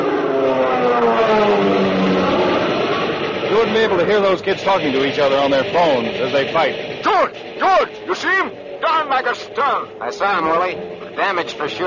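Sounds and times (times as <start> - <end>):
fighter planes zooming overhead: 0.0 - 11.8
speech: 3.7 - 11.8.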